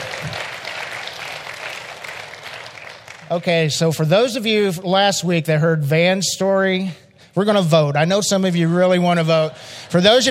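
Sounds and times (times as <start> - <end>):
audience applause: 0.0 - 3.6
speech: 3.3 - 10.2.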